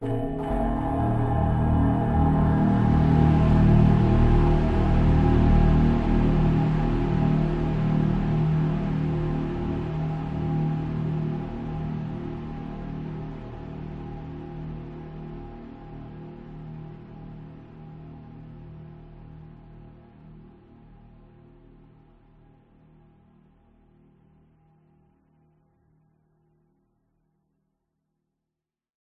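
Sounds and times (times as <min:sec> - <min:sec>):
chilling bell chime: 0:00.0 - 0:02.5
horror hit: 0:00.0 - 0:06.0
drone: 0:00.0 - 0:14.8.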